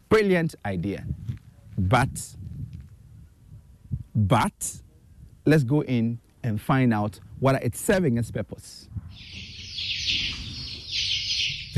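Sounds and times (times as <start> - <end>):
speech: 0.1 - 1.2, 1.8 - 2.4, 4.2 - 4.8, 5.5 - 9.4
chickens clucking in a warehouse: 9.2 - 11.7.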